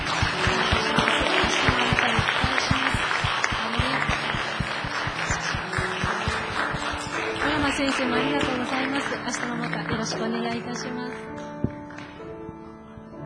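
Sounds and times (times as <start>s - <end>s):
audience applause: 0.0s - 10.2s
speech: 7.8s - 11.4s.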